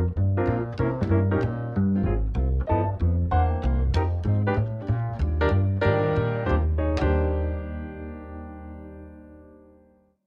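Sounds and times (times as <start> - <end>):
up tempo swing jazz backing track without drums: 0.0 - 8.0.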